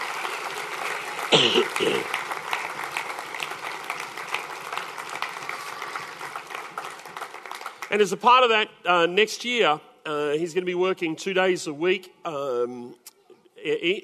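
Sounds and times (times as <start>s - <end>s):
church congregation applauding a new youth pastor: 0.0s - 8.2s
speech: 1.3s - 2.2s, 7.9s - 14.0s.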